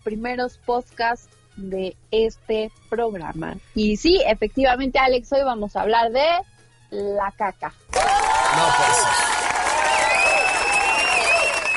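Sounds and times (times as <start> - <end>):
speech: 0.0 - 9.3
applause: 7.9 - 11.7.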